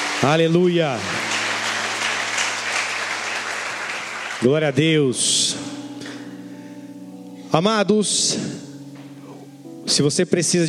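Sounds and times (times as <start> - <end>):
crowd applause: 0.0 - 4.8
speech: 0.2 - 1.2, 4.4 - 6.0, 7.5 - 8.7, 9.9 - 10.6.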